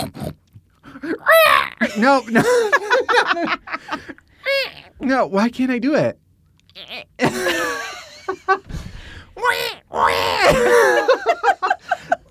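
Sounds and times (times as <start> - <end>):
person imitating a screaming pig: 1.1 - 1.8, 4.4 - 5.0, 6.7 - 7.2, 9.4 - 10.7
laughter: 1.8 - 4.2, 7.2 - 8.7, 10.4 - 12.2
speech: 1.9 - 6.2, 8.3 - 8.8, 9.4 - 11.8.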